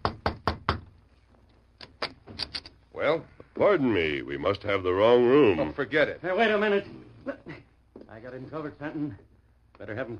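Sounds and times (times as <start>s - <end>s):
knuckles knocking on a room door: 0.0s - 1.0s
speech: 3.0s - 7.6s, 8.3s - 10.1s.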